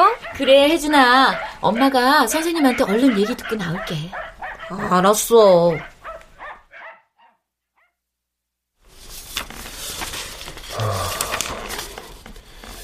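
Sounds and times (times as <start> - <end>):
dog whimpering: 0.0 - 5.0
dog barking: 0.0 - 8.0
speech: 0.4 - 5.9.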